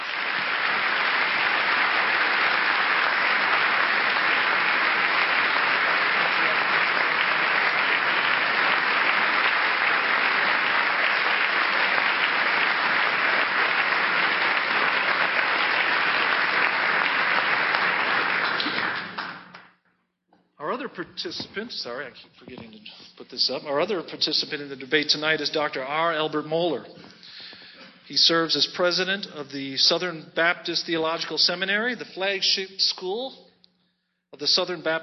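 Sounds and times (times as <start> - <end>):
audience applause welcoming Jim Wallis before a debate: 0.0 - 19.6
speech: 21.2 - 27.0, 28.1 - 33.4, 34.4 - 35.0.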